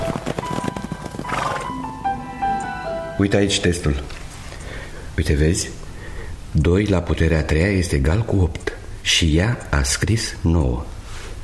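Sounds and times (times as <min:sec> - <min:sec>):
pony whinnying: 0:00.0 - 0:01.9
pony hooves clopping: 0:00.0 - 0:02.0
speech: 0:03.2 - 0:04.2, 0:05.2 - 0:05.8, 0:06.6 - 0:10.9.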